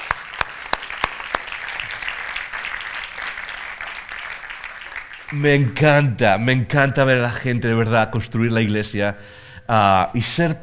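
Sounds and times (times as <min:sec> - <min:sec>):
audience applause: 0:00.0 - 0:05.4
speech: 0:05.3 - 0:10.6.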